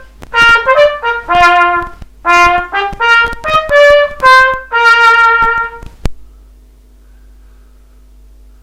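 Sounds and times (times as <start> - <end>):
trumpet playing an anthem: 0.0 - 5.9.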